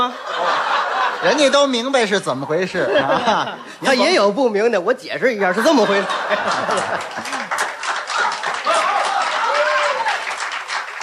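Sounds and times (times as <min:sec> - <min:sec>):
speech: 0:00.0 - 0:00.4, 0:01.2 - 0:07.5
laughter: 0:00.0 - 0:01.9, 0:02.6 - 0:04.3, 0:05.4 - 0:09.9
applause: 0:06.4 - 0:11.0.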